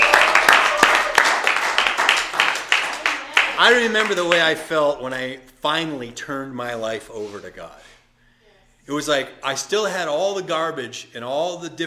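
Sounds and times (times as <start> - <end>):
crowd cheering and clapping: 0.0 - 4.6
speech: 3.6 - 7.9, 8.9 - 11.8.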